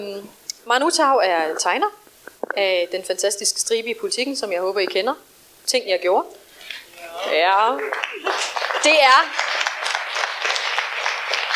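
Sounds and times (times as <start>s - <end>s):
speech: 0.0s - 2.0s, 2.6s - 6.4s, 7.2s - 9.4s
audience applauding: 7.6s - 11.5s.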